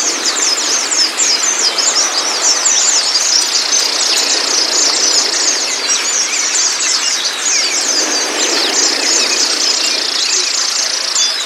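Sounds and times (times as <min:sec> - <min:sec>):
white-eye chattering in high twitters: 0:00.0 - 0:11.4.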